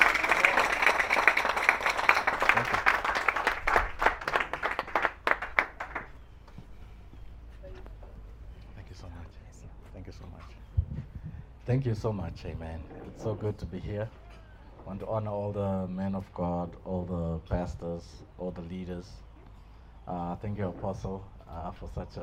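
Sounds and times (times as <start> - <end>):
annual conference audience applause welcoming a pastor to the platform: 0.0 - 6.2
speech: 11.7 - 14.2, 14.9 - 19.3, 20.1 - 22.2.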